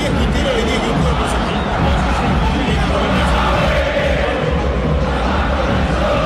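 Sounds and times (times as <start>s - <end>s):
football fans chanting a war cry: 0.1s - 6.2s.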